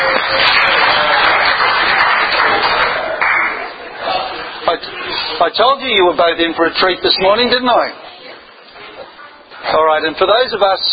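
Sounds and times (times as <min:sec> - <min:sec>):
audience applause: 0:00.0 - 0:03.9
speech: 0:05.4 - 0:08.0, 0:09.7 - 0:10.9.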